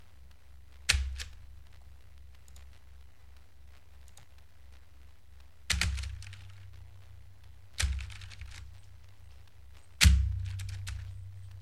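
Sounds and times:
mechanical keyboard key presses: 5.7s - 6.6s, 7.8s - 8.7s, 10.0s - 11.1s.

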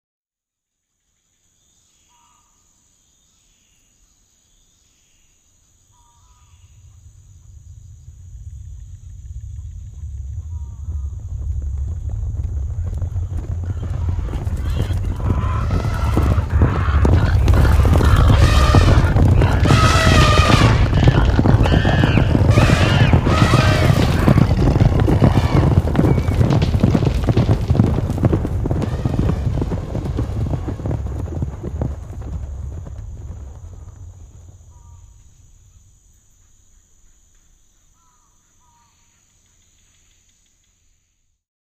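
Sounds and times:
herd of elephants running past in a forest: 6.7s - 36.0s.

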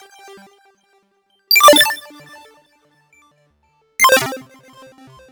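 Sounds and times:
high-tech style game interface sounds: 1.5s - 2.1s, 4.0s - 5.3s.

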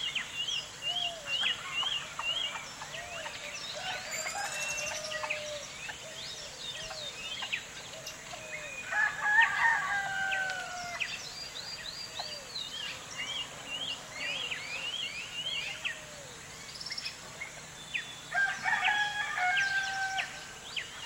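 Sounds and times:
birds singing in the early morning in a village: 0.0s - 21.0s
rooster crowing in the morning in a village: 3.8s - 5.7s, 8.8s - 11.1s, 18.3s - 20.5s.

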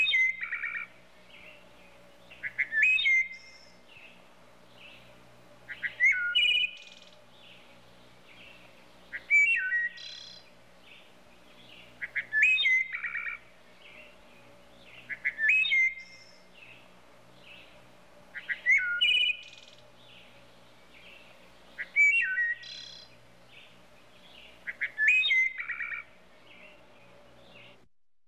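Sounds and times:
wood thrush calls: 0.0s - 1.0s, 2.3s - 3.7s, 5.7s - 7.2s, 9.1s - 10.5s, 11.8s - 14.2s, 14.9s - 16.4s, 18.3s - 19.8s, 21.8s - 23.1s, 24.4s - 26.2s.

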